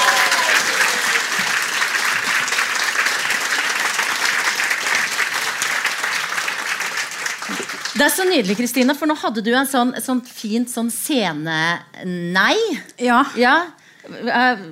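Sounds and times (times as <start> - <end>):
audience applause: 0.0 - 8.9
speech: 8.0 - 14.7.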